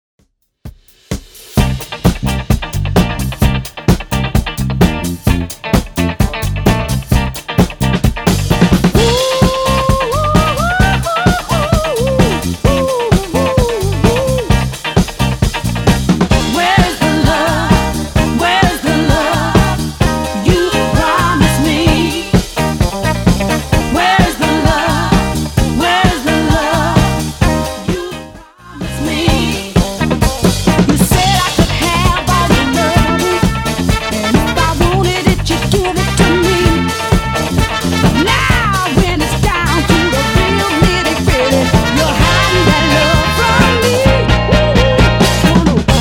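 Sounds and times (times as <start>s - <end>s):
70s drum loop at 130 bpm: 0.2s - 28.2s, 28.8s - 46.0s.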